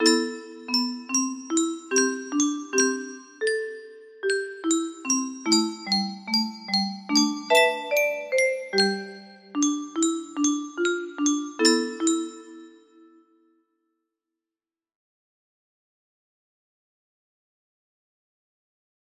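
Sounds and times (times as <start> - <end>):
melody: 0.0 - 13.2.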